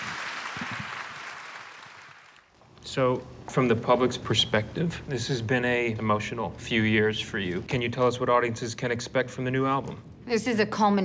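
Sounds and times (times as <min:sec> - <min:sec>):
audience applause after a film screening: 0:00.0 - 0:02.5
speech: 0:02.9 - 0:11.0.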